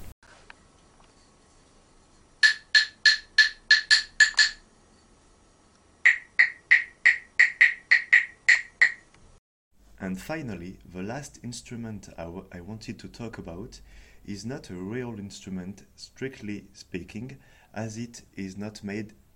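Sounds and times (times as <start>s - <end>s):
clapsticks or claves, Australian percussion instrument, clicking: 2.4s - 4.6s, 6.1s - 9.0s
speech: 10.0s - 19.2s.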